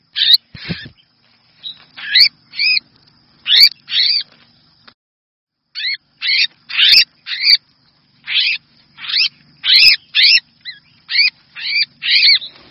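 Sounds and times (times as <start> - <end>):
red-whiskered bulbul distress call: 0.1 - 1.0, 1.6 - 2.8, 3.4 - 4.3, 5.7 - 7.6, 8.2 - 12.6.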